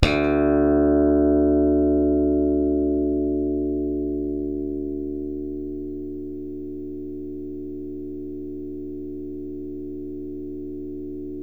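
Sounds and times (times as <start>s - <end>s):
slap electric bass: 0.0s - 8.1s.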